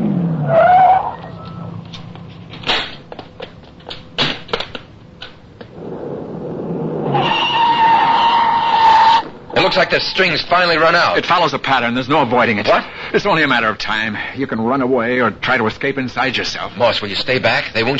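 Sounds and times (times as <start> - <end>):
tires squealing in a skid: 0.0 - 1.9, 5.8 - 10.6
car engine rumbling: 0.0 - 11.3
speech: 9.7 - 17.9.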